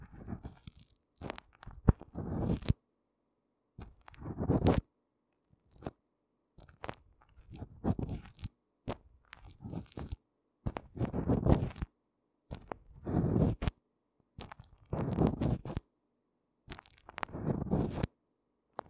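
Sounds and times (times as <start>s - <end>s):
cream massage ASMR sounds: 0.0s - 2.8s, 3.8s - 4.8s, 6.6s - 11.9s, 12.5s - 13.8s, 14.4s - 15.8s, 16.7s - 18.1s.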